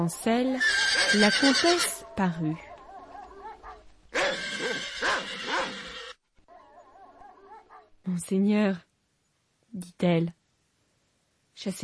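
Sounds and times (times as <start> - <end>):
speech: 0.0 - 2.7, 8.1 - 8.9, 9.7 - 10.4, 11.6 - 11.8
horses neighing: 0.6 - 2.0, 4.1 - 6.2
dogs barking in a courtyard: 2.0 - 5.9, 6.5 - 8.0.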